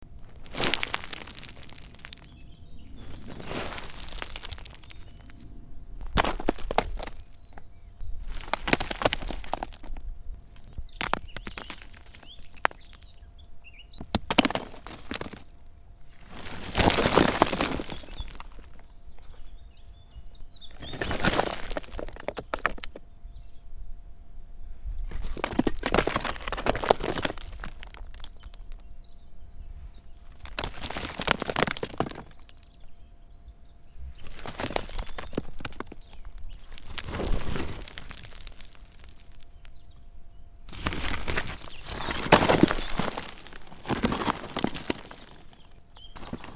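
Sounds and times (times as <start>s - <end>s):
stones: 0.3s - 2.4s, 3.1s - 5.4s, 6.0s - 7.6s, 8.3s - 10.0s, 10.6s - 13.0s, 14.0s - 15.5s, 16.2s - 18.9s, 20.8s - 23.0s, 25.1s - 28.8s, 30.3s - 32.6s, 34.2s - 39.7s, 40.7s - 46.5s.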